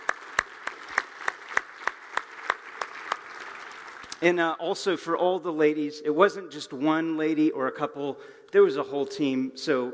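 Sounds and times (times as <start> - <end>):
audience applauding: 0.0 - 4.2
speech: 4.2 - 9.9.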